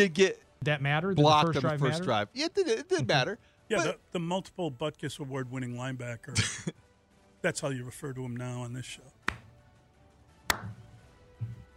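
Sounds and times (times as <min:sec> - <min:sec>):
speech: 0:00.0 - 0:09.2, 0:10.5 - 0:10.8
hand clap: 0:09.2 - 0:09.6, 0:10.5 - 0:10.9.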